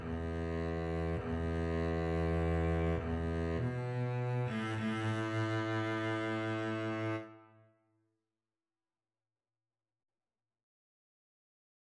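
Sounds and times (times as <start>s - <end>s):
double bass duet: 0.0s - 7.3s.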